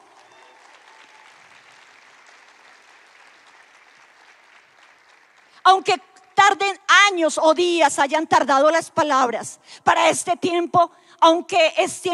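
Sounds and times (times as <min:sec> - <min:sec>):
audience applauding: 0:00.0 - 0:05.6
speech: 0:05.7 - 0:12.1.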